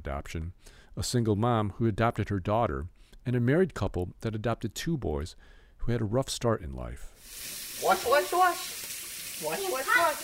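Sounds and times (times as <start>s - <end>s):
speech: 0.0s - 10.2s
water running at a kitchen sink: 7.2s - 10.2s
children's voices: 9.4s - 10.2s.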